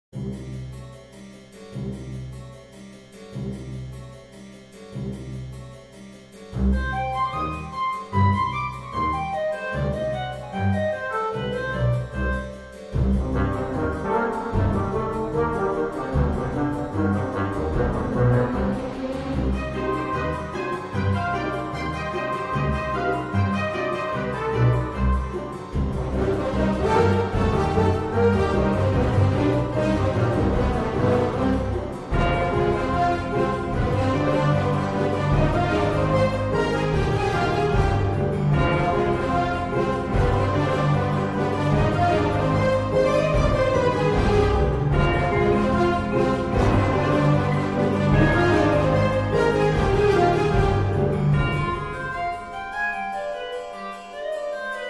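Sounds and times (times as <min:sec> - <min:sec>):
orchestral remix: 0:00.2 - 0:54.8.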